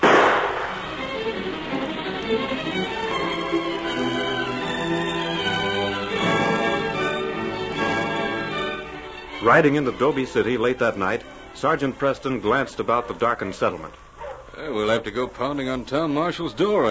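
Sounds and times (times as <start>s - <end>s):
gunshot: 0.0s - 1.0s
orchestral music: 0.0s - 12.9s
speech: 9.4s - 14.0s, 14.6s - 16.8s.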